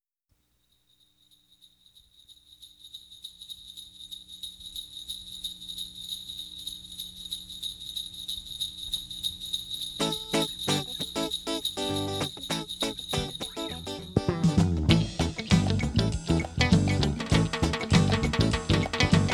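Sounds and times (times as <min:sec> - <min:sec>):
instrumental Christmas song: 0:09.0 - 0:19.3.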